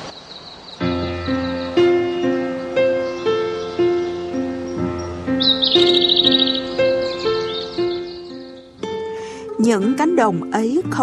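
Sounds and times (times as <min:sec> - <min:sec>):
bird's rapid high trilling chirps: 0:00.0 - 0:09.0
slow melody of sustained tones: 0:00.9 - 0:10.0
speech: 0:09.7 - 0:11.0.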